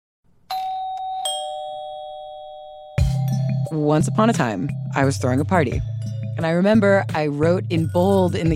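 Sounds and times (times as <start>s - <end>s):
doorbell ringing: 0.5s - 3.8s
speech: 3.7s - 8.5s.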